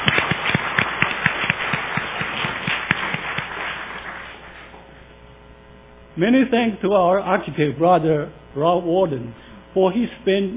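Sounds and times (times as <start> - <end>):
audience applauding: 0.0 - 4.9
speech: 6.2 - 10.5.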